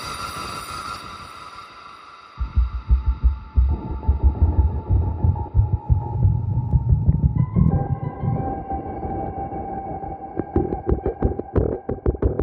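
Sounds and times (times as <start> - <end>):
lead synths: 2.4 - 12.3.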